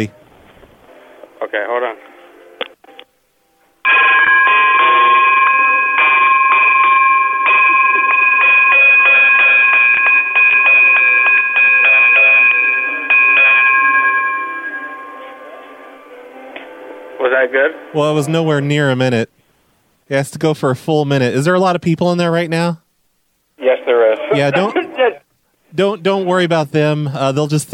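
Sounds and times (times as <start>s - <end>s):
speech: 1.5s - 2.1s, 17.4s - 19.4s, 20.1s - 22.8s, 23.6s - 24.8s, 25.7s - 27.7s
telephone ringing continuously with electronic trill: 3.8s - 16.5s.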